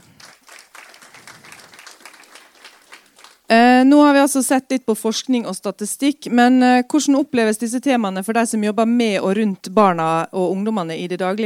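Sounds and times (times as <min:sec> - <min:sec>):
audience applause: 0:00.0 - 0:03.5
speech: 0:03.8 - 0:11.4.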